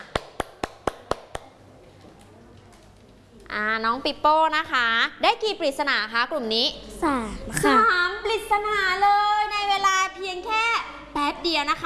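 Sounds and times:
audience clapping applause: 0.0 - 1.5
speech: 3.5 - 11.8.

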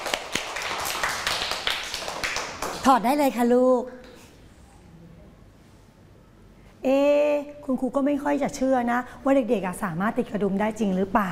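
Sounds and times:
group of children clapping: 0.0 - 3.0
speech: 2.8 - 4.0, 7.7 - 11.2.

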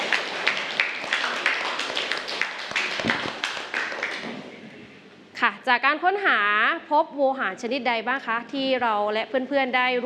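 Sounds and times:
classroom applause for a student group: 0.0 - 4.5
speech: 5.6 - 10.0.

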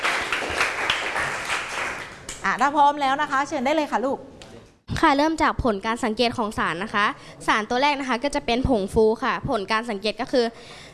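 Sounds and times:
group of students applauding: 0.0 - 2.4
speech: 2.5 - 4.3, 5.0 - 10.8.

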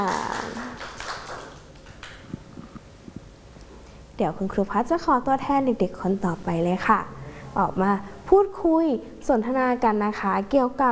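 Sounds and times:
children clapping hands: 0.0 - 2.4
speech: 4.2 - 10.9.

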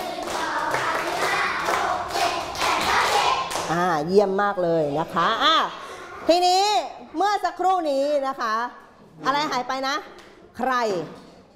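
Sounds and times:
children clapping: 0.0 - 3.8
speech: 3.7 - 11.2.

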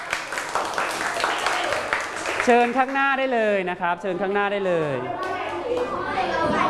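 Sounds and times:
applause: 0.0 - 3.0
speech: 2.4 - 6.6.

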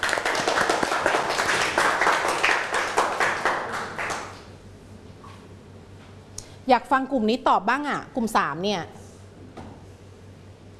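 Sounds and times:
students clapping: 0.0 - 4.5
speech: 6.7 - 9.0.

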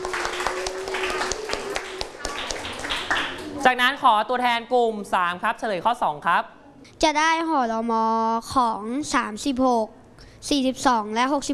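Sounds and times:
roomful of classroom students clapping: 0.0 - 3.8
speech: 3.6 - 11.5.

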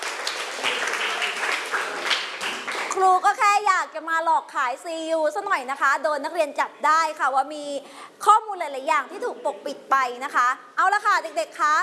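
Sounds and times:
classroom applause for student groups: 0.0 - 3.1
speech: 3.0 - 11.8.

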